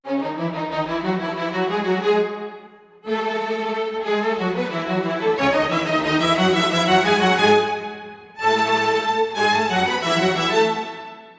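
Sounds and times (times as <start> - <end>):
orchestral strings in C sharp minor: 0.1 - 11.3.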